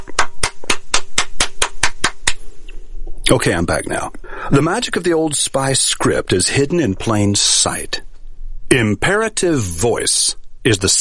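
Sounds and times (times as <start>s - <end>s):
single person clapping hands: 0.0s - 2.4s
speech: 3.3s - 8.0s, 8.7s - 10.9s.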